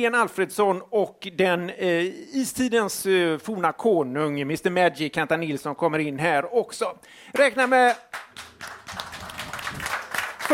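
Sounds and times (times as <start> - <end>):
speech: 0.0 - 8.4
audience applause: 8.1 - 10.5.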